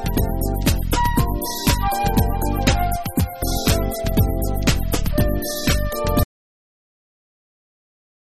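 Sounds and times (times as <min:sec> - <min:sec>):
flute: 0:00.0 - 0:06.3.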